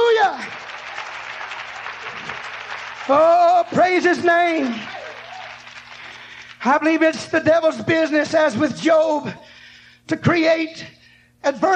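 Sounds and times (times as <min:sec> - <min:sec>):
crowd clapping: 0:00.0 - 0:06.7
speech: 0:03.1 - 0:05.0, 0:06.6 - 0:09.5, 0:10.1 - 0:11.7.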